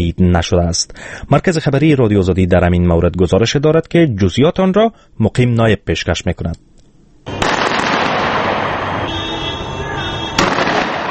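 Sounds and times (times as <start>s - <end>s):
speech: 0.0s - 6.7s
gunfire in Tripoli, Libya: 7.3s - 9.1s, 10.4s - 11.0s.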